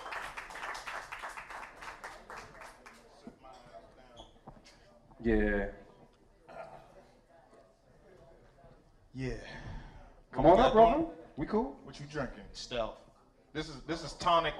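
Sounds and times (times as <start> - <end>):
crowd clapping: 0.0 - 3.2
speech: 5.2 - 5.8, 9.2 - 9.8, 10.4 - 14.5.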